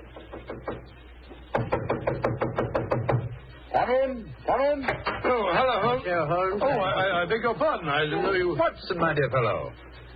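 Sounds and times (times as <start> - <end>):
knocking on a wooden door: 0.2 - 0.9, 1.5 - 3.3
speech: 3.9 - 9.9.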